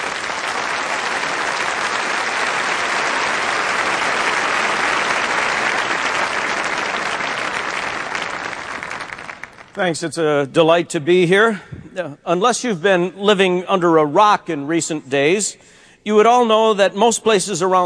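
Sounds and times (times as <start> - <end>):
large crowd clapping to welcome Bill Hybels at the Crystal Cathedral: 0.0 - 10.0
speech: 9.8 - 17.8.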